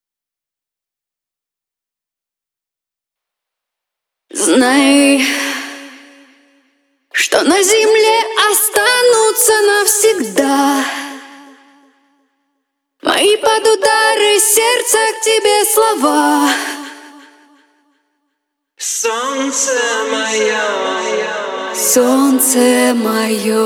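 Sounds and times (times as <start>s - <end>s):
a cappella singing: 4.3s - 12.1s, 13.0s - 17.8s, 18.8s - 23.6s.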